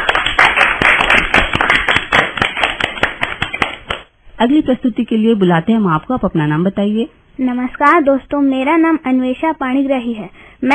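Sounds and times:
children clapping applause: 0:00.0 - 0:04.1
speech: 0:04.4 - 0:10.7.

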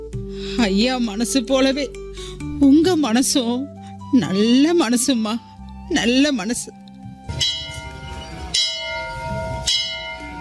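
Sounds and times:
speech: 0:00.6 - 0:06.8
temple bell ringing: 0:07.3 - 0:10.3.

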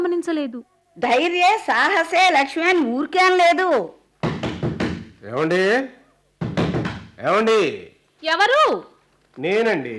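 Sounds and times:
speech: 0:00.2 - 0:04.0, 0:05.2 - 0:06.0, 0:07.2 - 0:09.9
knocking on a door: 0:04.2 - 0:05.2, 0:06.4 - 0:07.2.

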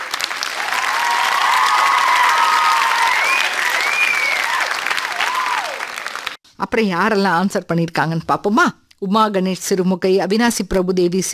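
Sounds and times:
loud applause: 0:00.0 - 0:06.4
speech: 0:06.7 - 0:11.3.

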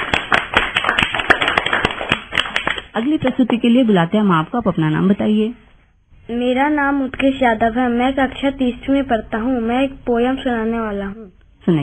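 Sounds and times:
audience clapping: 0:00.0 - 0:03.5
speech: 0:03.0 - 0:05.6, 0:06.3 - 0:11.8.

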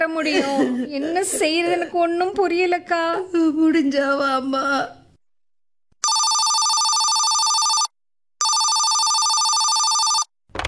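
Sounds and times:
speech: 0:00.1 - 0:05.0
telephone ringing: 0:06.0 - 0:10.3.

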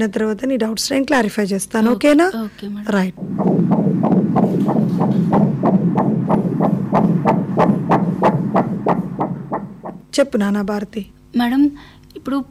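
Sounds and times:
speech: 0:00.0 - 0:05.8, 0:10.2 - 0:12.4
low hum: 0:03.1 - 0:10.2
baby's heartbeat during a pregnancy exam: 0:03.2 - 0:10.1.

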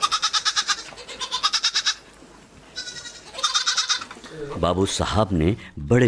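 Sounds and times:
goat bleating: 0:00.0 - 0:04.5
speech: 0:04.6 - 0:06.0.

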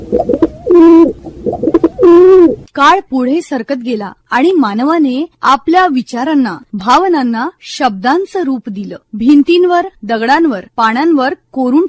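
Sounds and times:
pigeons cooing: 0:00.0 - 0:02.7
speech: 0:02.8 - 0:11.8.

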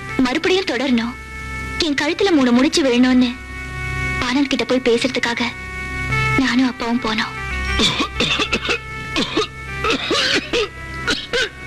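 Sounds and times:
speech: 0:00.2 - 0:01.2, 0:01.8 - 0:03.4, 0:04.3 - 0:05.6, 0:06.4 - 0:08.3
man coughing: 0:07.8 - 0:11.6.

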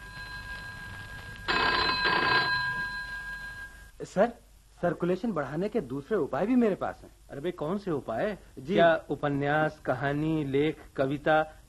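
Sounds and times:
telephone bell ringing: 0:00.0 - 0:03.9
speech: 0:04.0 - 0:11.6.

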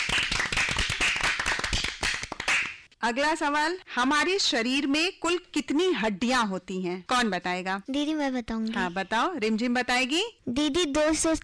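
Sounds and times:
small group applauding: 0:00.0 - 0:02.9
speech: 0:03.0 - 0:11.4.

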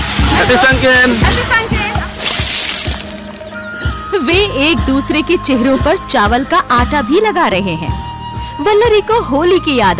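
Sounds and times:
water splashing from thrown buckets: 0:00.0 - 0:03.6
speech: 0:00.5 - 0:01.6, 0:04.2 - 0:08.0, 0:08.6 - 0:09.9.

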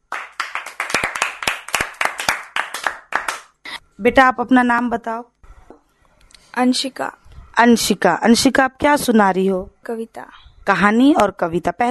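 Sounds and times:
group applause, clapping hands: 0:00.0 - 0:03.6
speech: 0:04.0 - 0:05.3, 0:06.6 - 0:11.8.

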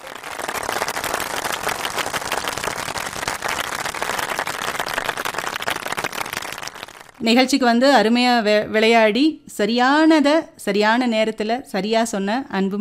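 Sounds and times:
crowd applauding: 0:00.0 - 0:07.2
speech: 0:07.2 - 0:12.7.

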